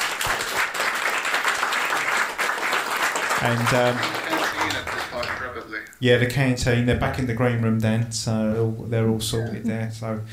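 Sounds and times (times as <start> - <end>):
audience applause: 0.0 - 5.8
speech: 3.4 - 10.3.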